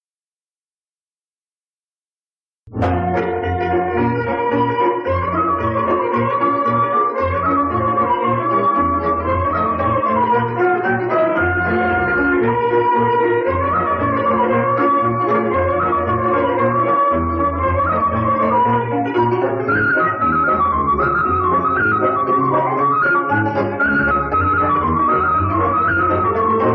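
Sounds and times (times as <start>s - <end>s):
Romanian folk dance music: 2.7s - 26.7s.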